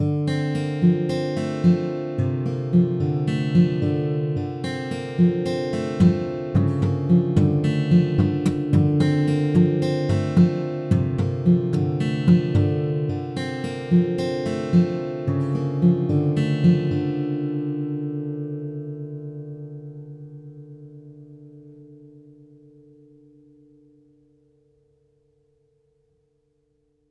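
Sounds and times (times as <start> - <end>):
intro instrumental music: 0.1 - 19.6.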